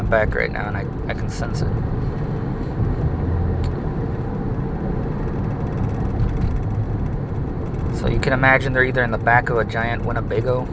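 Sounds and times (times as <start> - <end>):
speech: 0.0 - 2.2, 8.0 - 10.7
car driving on a highway: 0.0 - 10.7.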